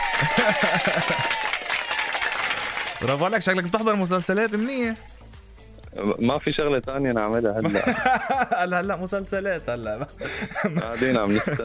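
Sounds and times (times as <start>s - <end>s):
laughter: 0.0s - 1.6s, 7.6s - 8.9s, 9.9s - 11.6s
crowd applause: 0.0s - 5.0s
speech: 0.2s - 1.5s, 3.0s - 5.1s, 6.0s - 11.6s.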